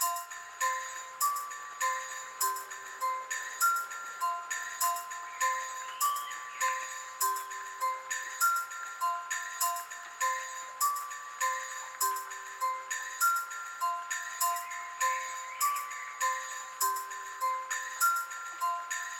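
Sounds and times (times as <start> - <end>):
music: 0.0 - 19.1.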